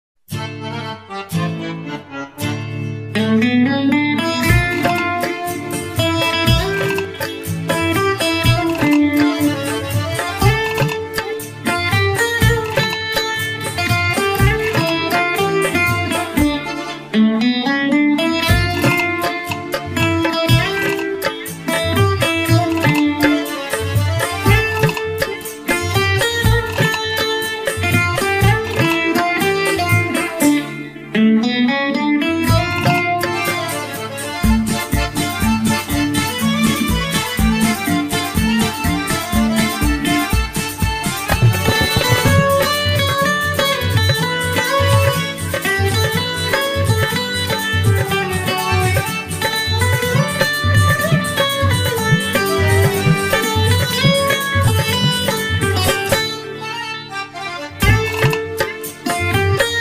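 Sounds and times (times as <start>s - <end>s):
guitar: 0.3s - 59.7s.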